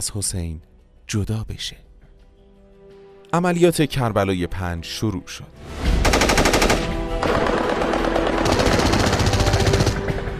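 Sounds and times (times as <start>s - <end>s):
speech: 0.0s - 1.9s, 3.3s - 5.8s
machine-gun fire in heavy battle: 6.0s - 10.3s.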